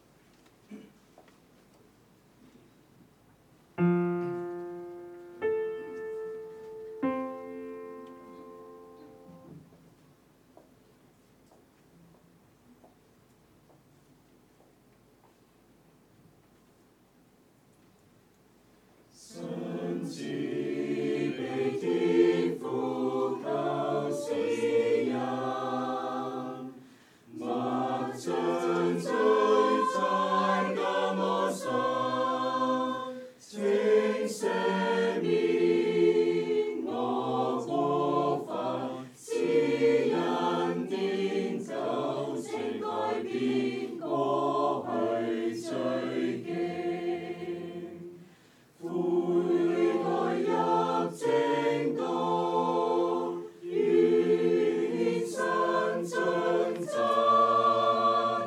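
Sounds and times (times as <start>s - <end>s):
choir singing: 3.8s - 9.6s, 19.1s - 58.4s.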